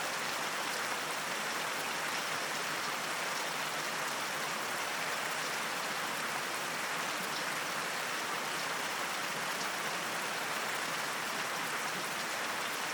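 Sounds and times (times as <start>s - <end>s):
rainstorm: 0.0s - 12.9s.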